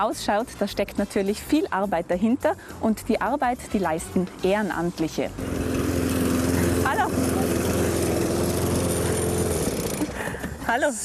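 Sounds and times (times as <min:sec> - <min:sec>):
speech: 0:00.0 - 0:05.9, 0:10.7 - 0:11.0
lawn mower mowing grounds around a pond: 0:04.3 - 0:10.8.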